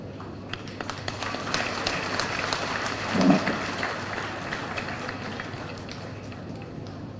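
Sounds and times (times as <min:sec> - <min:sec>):
audience applauding: 0:00.2 - 0:07.1.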